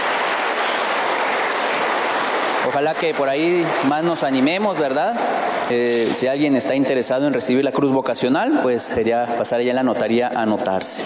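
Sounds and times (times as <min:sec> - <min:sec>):
applause: 0:00.0 - 0:06.2
speech: 0:02.8 - 0:11.0.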